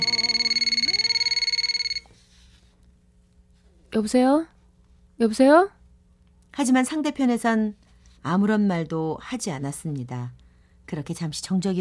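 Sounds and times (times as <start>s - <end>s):
telephone ringing: 0.0s - 2.1s
speech: 4.0s - 4.5s, 5.2s - 5.8s, 6.6s - 11.7s.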